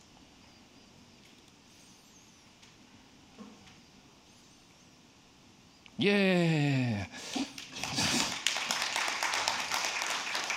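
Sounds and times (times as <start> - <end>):
speech: 6.0 - 7.2
audience applause: 7.4 - 10.5.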